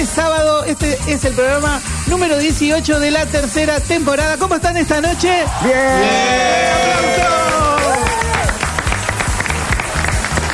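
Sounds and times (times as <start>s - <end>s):
speech: 0.0s - 8.1s
people whooping and cheering: 5.0s - 9.1s
audience applause: 5.5s - 10.5s.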